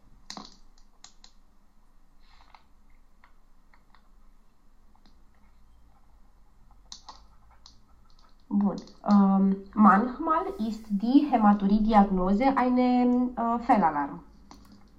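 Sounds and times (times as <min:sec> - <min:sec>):
low steady hiss: 0:00.0 - 0:14.9
typing on a computer keyboard: 0:00.2 - 0:01.4, 0:06.8 - 0:09.2, 0:14.4 - 0:14.9
speech: 0:08.7 - 0:14.2.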